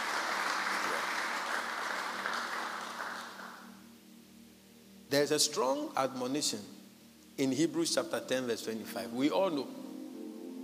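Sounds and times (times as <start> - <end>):
audience clapping: 0.0 - 3.7
speech: 5.1 - 6.8, 7.4 - 9.8.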